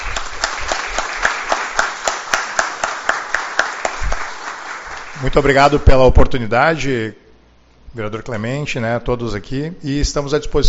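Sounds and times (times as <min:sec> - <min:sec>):
audience applause: 0:00.0 - 0:05.5
speech: 0:05.2 - 0:07.2, 0:07.9 - 0:10.6.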